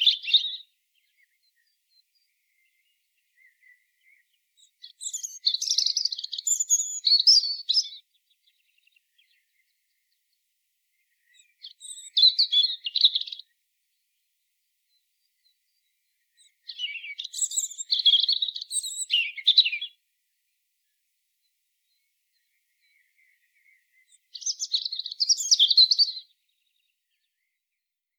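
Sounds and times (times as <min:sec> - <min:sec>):
European robin song: 0:00.0 - 0:10.3, 0:10.9 - 0:13.6, 0:14.9 - 0:20.0, 0:21.8 - 0:27.6.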